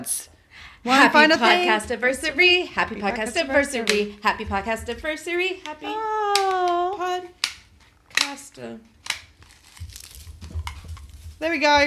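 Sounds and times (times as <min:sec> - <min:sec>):
speech: 0:00.0 - 0:07.4, 0:08.2 - 0:08.9, 0:11.4 - 0:11.8
confetti cannons thrown, crinkling paper: 0:09.0 - 0:11.4.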